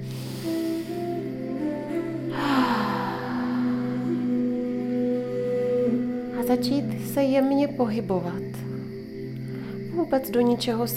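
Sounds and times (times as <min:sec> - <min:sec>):
deep breathing during a guided movement session: 0:00.0 - 0:04.9
soft sustained musical tones: 0:00.0 - 0:10.9
speech: 0:06.5 - 0:08.4, 0:10.1 - 0:10.9.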